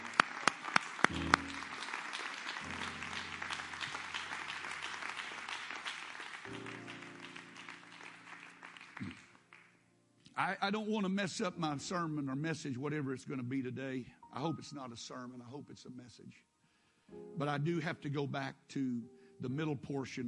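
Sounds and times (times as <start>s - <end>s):
audience clapping hands: 0.0s - 9.8s
speech: 10.4s - 16.5s, 17.1s - 20.2s.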